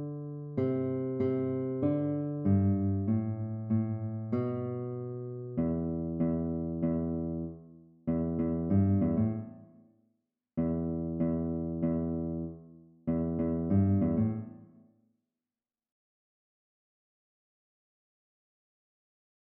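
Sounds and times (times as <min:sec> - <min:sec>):
minor scale melodies: 0:00.0 - 0:09.7, 0:10.6 - 0:14.7.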